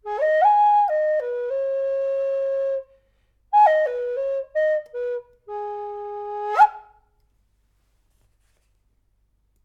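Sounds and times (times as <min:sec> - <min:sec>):
Native American style flute tuned to G sharp at 440 Hz: 0:00.0 - 0:02.9, 0:03.5 - 0:07.0.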